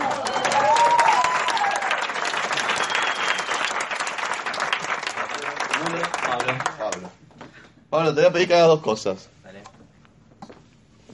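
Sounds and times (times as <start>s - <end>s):
audience applause: 0.0s - 7.1s
speech: 8.0s - 9.3s.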